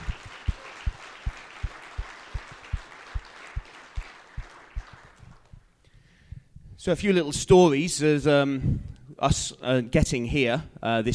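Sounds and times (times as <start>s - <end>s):
round of applause: 0.0s - 5.8s
speech: 6.8s - 11.1s.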